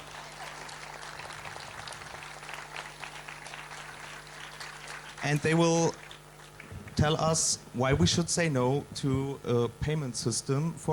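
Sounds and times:
audience applause: 0.0 - 7.1
speech: 5.2 - 6.0, 7.0 - 10.9.

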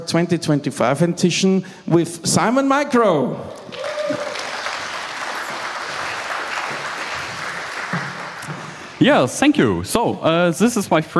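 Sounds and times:
speech: 0.0 - 4.4, 9.0 - 11.1
warm round of applause: 3.6 - 9.0.

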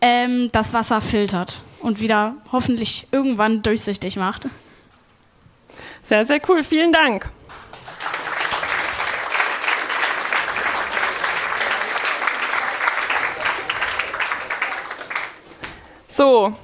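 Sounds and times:
speech: 0.2 - 4.6, 6.0 - 7.4, 16.2 - 16.6
audience applause: 7.5 - 15.6.

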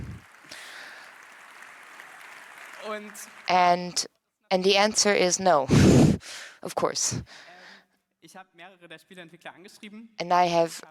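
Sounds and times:
audience applause: 0.0 - 3.8
speech: 2.8 - 7.5, 8.2 - 10.8.

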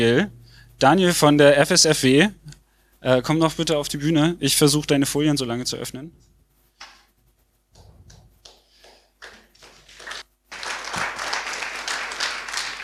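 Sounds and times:
speech: 0.0 - 6.3
audience applause: 8.9 - 12.8.

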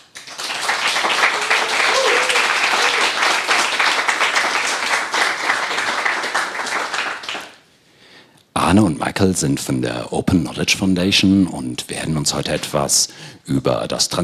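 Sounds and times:
crowd applauding: 0.0 - 7.6
speech: 8.7 - 14.2.

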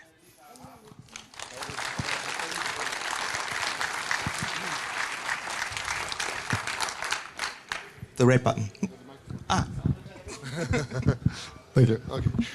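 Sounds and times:
audience clapping loudly in welcome: 0.9 - 8.2
speech: 8.2 - 9.7, 10.6 - 12.5
laughter: 10.3 - 12.5.

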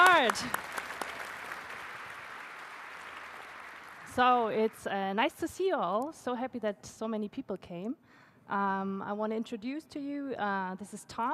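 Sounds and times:
audience round of applause: 0.0 - 4.2
speech: 0.2 - 0.7, 4.2 - 11.3.

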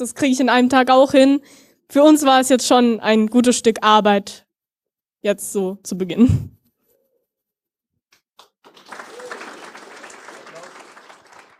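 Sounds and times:
speech: 0.0 - 4.4, 5.2 - 6.6
audience applause: 8.4 - 11.5.

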